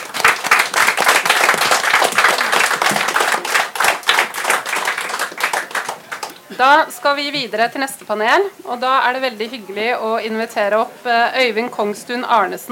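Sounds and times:
audience applause: 0.0 - 6.6
speech: 6.6 - 12.7.

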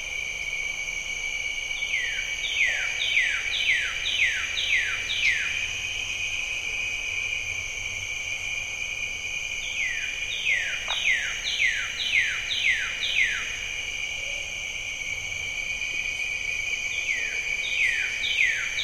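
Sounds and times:
high insect trills: 0.0 - 18.8
bird-voiced treefrogs calling: 1.8 - 6.4, 9.6 - 18.8.

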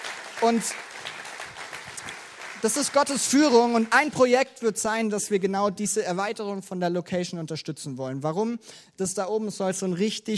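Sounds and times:
audience applause: 0.0 - 4.1
speech: 0.4 - 0.9, 2.6 - 10.3.

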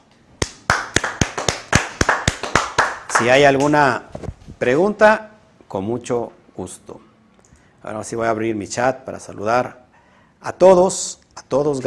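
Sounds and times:
sharp crisp hand claps: 0.4 - 3.9
speech: 3.2 - 7.1, 7.8 - 9.8, 10.4 - 11.8.

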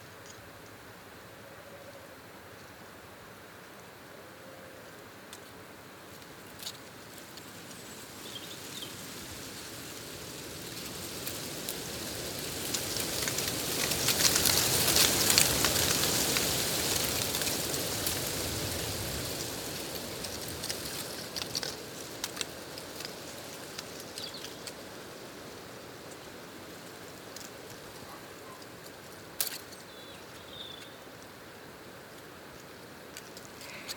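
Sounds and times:
dry oak leaves clattering in the wind in Clocaenog Forest, North Wales: 5.3 - 33.9.

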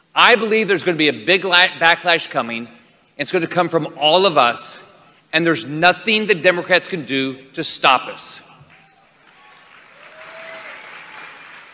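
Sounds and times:
speech: 0.2 - 8.5
applause: 9.3 - 11.7.

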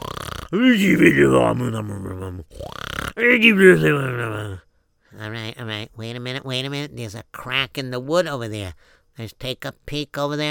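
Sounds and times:
man imitating loud snoring: 0.0 - 4.6
speech: 0.5 - 4.6, 5.2 - 10.4.

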